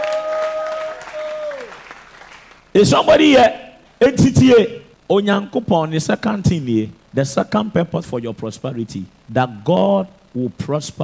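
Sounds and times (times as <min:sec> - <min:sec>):
audience shouting: 0:00.0 - 0:02.3
audience clapping: 0:00.0 - 0:02.7
speech: 0:02.8 - 0:11.0.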